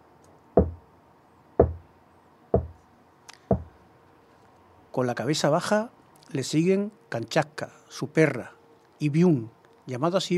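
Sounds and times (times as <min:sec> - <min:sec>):
wooden club knocking: 0:00.6 - 0:00.8, 0:01.6 - 0:01.8, 0:02.6 - 0:02.8, 0:03.5 - 0:03.7
speech: 0:05.0 - 0:10.3.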